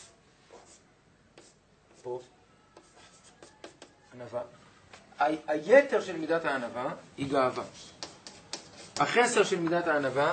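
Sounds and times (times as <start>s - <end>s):
pen drawing a diagram: 1.4s - 2.1s, 2.8s - 4.0s, 7.9s - 9.2s
speech: 2.0s - 2.4s, 4.2s - 8.0s, 9.0s - 10.3s.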